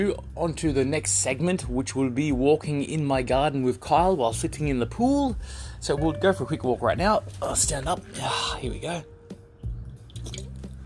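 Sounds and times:
speech: 0.0 - 9.1
person taking a swig of a drink: 9.9 - 10.8.

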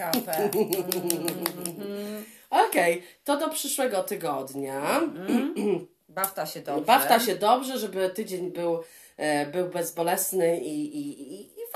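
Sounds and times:
applause: 0.0 - 1.8
speech: 0.0 - 11.7
laughter: 0.2 - 1.8.

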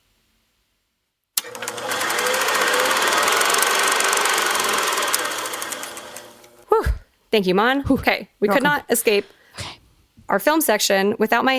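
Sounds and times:
tape being cranked and rewound: 1.4 - 6.6
speech: 7.3 - 9.7, 10.3 - 11.5.

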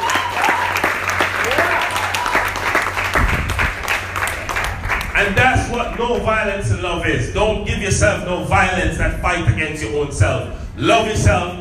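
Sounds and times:
audience clapping: 0.0 - 6.4
speech: 5.8 - 11.5.

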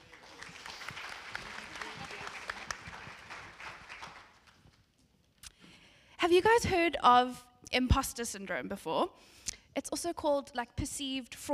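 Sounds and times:
audience applause: 0.0 - 4.7
speech: 6.2 - 11.5.

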